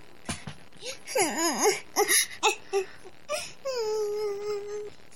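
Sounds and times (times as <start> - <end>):
person crying: 0.8 - 4.9.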